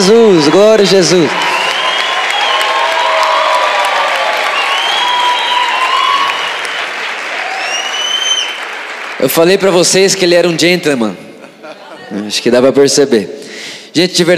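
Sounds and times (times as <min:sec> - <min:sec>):
speech: 0:00.0 - 0:01.5, 0:09.2 - 0:11.2, 0:12.1 - 0:14.3
audience applause: 0:00.4 - 0:10.6
laughter: 0:11.2 - 0:12.4.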